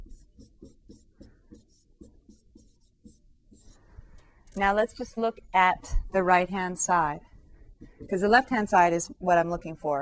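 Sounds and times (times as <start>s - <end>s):
calculus derivative equation written out by hand: 0.0s - 3.8s
speech: 4.6s - 7.3s, 8.0s - 10.0s.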